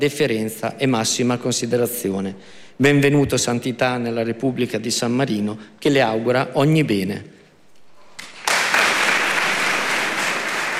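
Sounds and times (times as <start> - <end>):
speech: 0.0 - 7.4
applause: 8.2 - 10.7.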